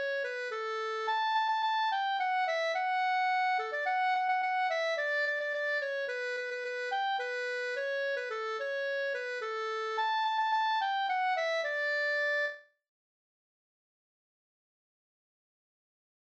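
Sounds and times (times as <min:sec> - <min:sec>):
polka music: 0:00.0 - 0:12.6.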